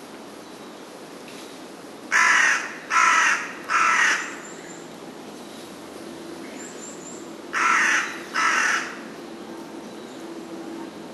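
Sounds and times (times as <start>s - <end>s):
carrion crow cawing: 2.1s - 4.4s, 7.5s - 9.1s.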